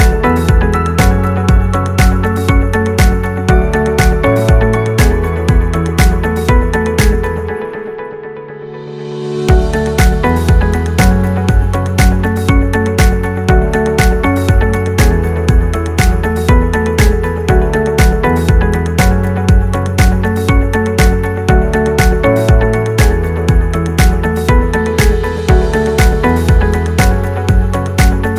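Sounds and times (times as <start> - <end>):
positive corporate promo music: 0.0 - 28.3.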